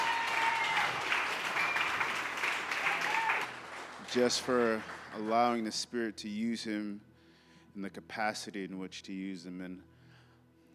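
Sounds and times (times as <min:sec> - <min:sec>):
audience applause: 0:00.0 - 0:05.6
speech: 0:04.1 - 0:07.1, 0:07.7 - 0:09.9.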